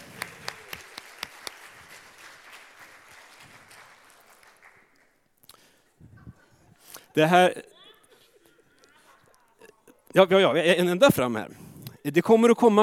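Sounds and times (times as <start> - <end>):
audience applause: 0.0 - 5.2
speech: 7.2 - 7.7, 10.2 - 12.8.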